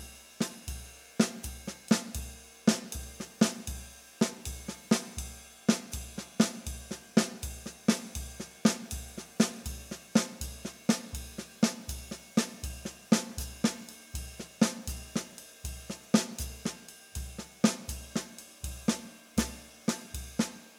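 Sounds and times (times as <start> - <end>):
bop drumming warm-up: 4.5 - 20.5.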